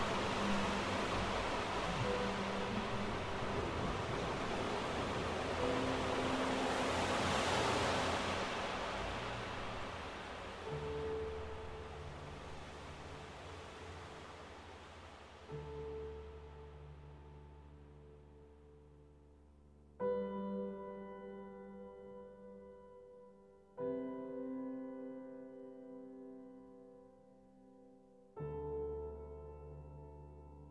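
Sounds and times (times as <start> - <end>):
sea at Aberystwyth: 0.0 - 16.5
low sustained piano chords: 0.0 - 30.7.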